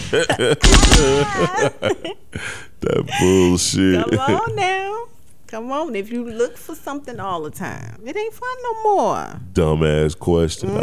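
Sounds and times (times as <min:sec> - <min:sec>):
men talking and laughing over the game: 0:00.0 - 0:04.9
speech: 0:00.1 - 0:10.8
video game gunfire: 0:00.6 - 0:01.5.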